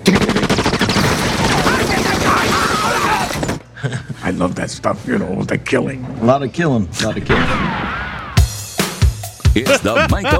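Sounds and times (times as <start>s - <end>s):
rapid gunfire from a film: 0.0s - 3.6s
speech: 4.4s - 7.8s, 9.6s - 10.3s.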